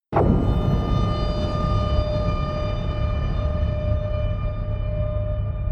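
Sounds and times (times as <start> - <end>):
sub explosion ring: 0.1 - 5.6.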